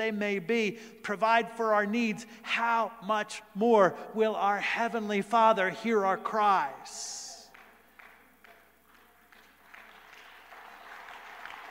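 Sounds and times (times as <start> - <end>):
speech: 0.0 - 7.3
golf clap, light polite applause: 7.5 - 11.7.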